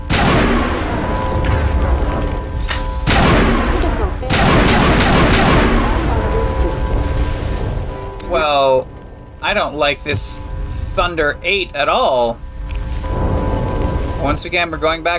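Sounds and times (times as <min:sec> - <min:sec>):
video game assault rifle gunfire: 0:00.0 - 0:06.1
steady humming layer of game sound: 0:00.0 - 0:14.4
speech: 0:09.5 - 0:12.4, 0:14.2 - 0:15.1.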